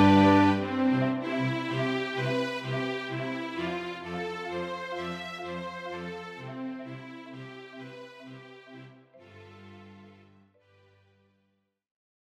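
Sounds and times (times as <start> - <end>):
cinematic music: 0.0 - 7.8.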